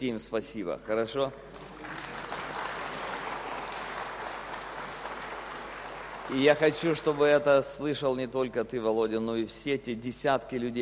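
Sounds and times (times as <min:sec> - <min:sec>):
speech: 0:00.0 - 0:02.1, 0:06.3 - 0:10.8
audience applause: 0:01.4 - 0:07.7.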